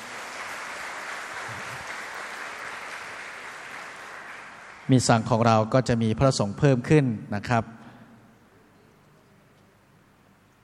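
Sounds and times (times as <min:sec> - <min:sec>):
audience applause: 0:00.0 - 0:05.1
speech: 0:04.9 - 0:07.8.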